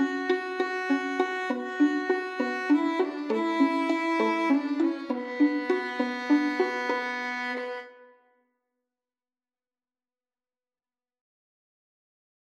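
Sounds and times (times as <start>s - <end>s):
Spanish violin: 0.0s - 8.2s.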